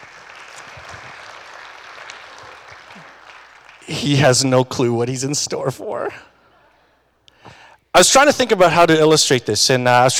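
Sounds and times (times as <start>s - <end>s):
audience applause: 0.0s - 4.1s
speech: 3.9s - 6.3s, 8.0s - 10.1s.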